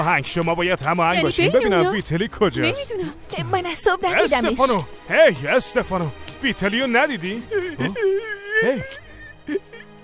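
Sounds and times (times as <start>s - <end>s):
speech: 0.0s - 9.7s
laughter: 7.0s - 10.0s
boy crying with whimpering sobs: 7.5s - 9.8s.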